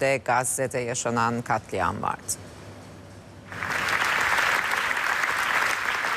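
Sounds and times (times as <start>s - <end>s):
speech: 0.0s - 2.5s
standing ovation applause at film festival: 3.5s - 6.1s.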